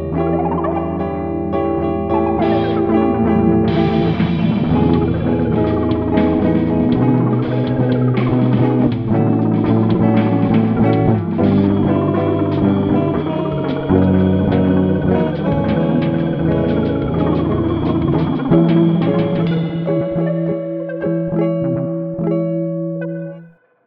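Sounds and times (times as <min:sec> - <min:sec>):
theremin: 0:00.0 - 0:23.6
drums: 0:02.4 - 0:20.6.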